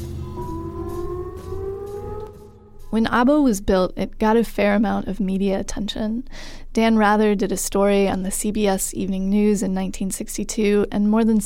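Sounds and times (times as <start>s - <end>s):
air raid siren wailing: 0.0s - 3.4s
low rumbling drone: 0.0s - 3.8s
speech: 2.9s - 11.4s.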